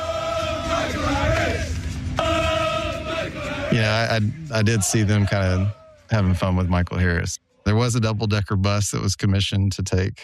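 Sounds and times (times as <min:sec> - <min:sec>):
large crowd of football fans chanting in a stadium: 0:00.0 - 0:06.4
speech: 0:03.9 - 0:10.2.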